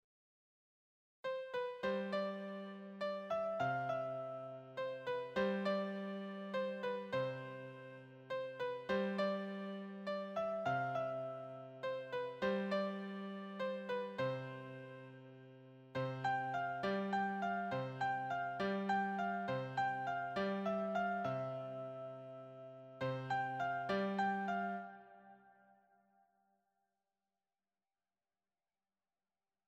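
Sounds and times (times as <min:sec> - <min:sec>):
beginner piano solo: 0:01.3 - 0:15.4, 0:16.0 - 0:25.4.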